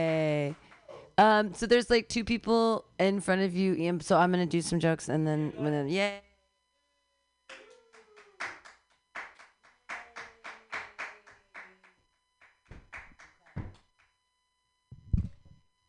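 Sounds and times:
speech: 0:01.2 - 0:06.2
small crowd clapping at an open mic comedy night: 0:07.5 - 0:14.2.

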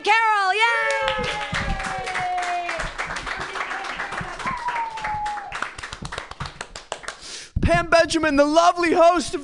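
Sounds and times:
comedy club audience clapping to welcome a new comedian: 0:00.8 - 0:07.3
speech: 0:08.0 - 0:09.4.

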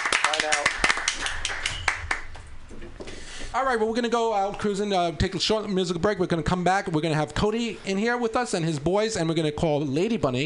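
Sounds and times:
round of applause: 0:00.0 - 0:02.4
speech: 0:03.6 - 0:10.4.

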